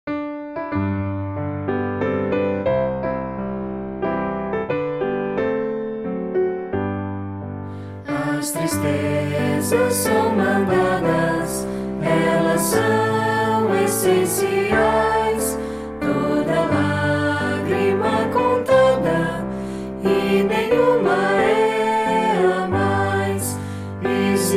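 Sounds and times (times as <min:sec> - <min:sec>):
piano: 0:00.0 - 0:24.5
person singing: 0:08.1 - 0:24.5.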